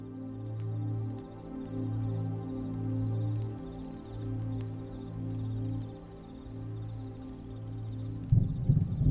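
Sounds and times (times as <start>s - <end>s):
gentle rain: 0.0s - 9.0s
distant thunder: 8.3s - 9.0s.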